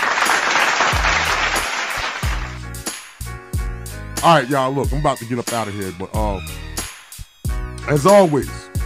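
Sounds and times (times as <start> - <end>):
applause: 0.0 - 3.2
speech: 4.2 - 6.7, 7.9 - 8.7.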